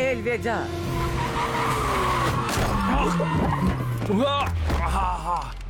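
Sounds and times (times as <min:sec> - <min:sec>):
speech: 0:00.1 - 0:00.8, 0:03.0 - 0:05.6
car tires skidding and squealing as the brakes fail: 0:00.8 - 0:04.8.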